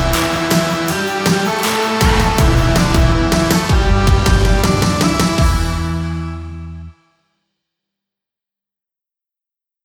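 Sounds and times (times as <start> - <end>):
upbeat sport rock music: 0.0 - 6.4.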